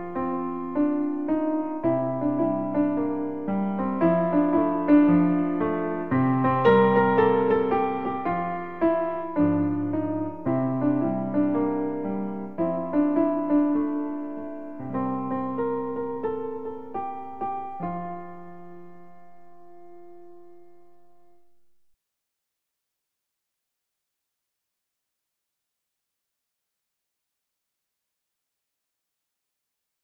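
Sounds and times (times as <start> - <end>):
piano: 0.0 - 21.9.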